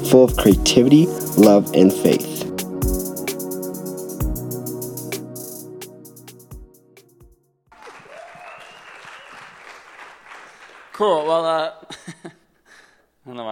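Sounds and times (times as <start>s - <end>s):
speech: 0.0s - 2.5s, 11.0s - 11.9s, 13.3s - 13.4s
audience applause: 7.7s - 11.1s.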